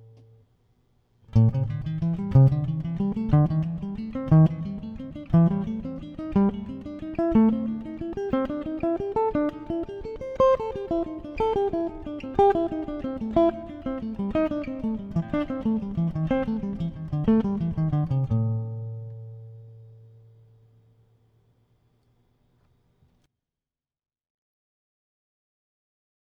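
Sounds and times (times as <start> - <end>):
A minor blues scale melody: 1.3 - 19.9.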